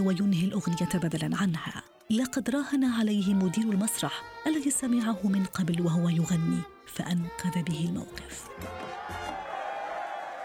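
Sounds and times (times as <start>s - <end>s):
speech: 0.0s - 9.2s
audience applauding: 8.5s - 10.4s.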